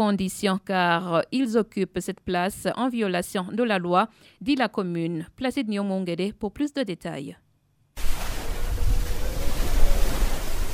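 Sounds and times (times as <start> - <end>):
speech: 0.0 - 7.4
waves of Lake Tanganyika slapping against house walls on Mvugo beach: 8.0 - 10.7.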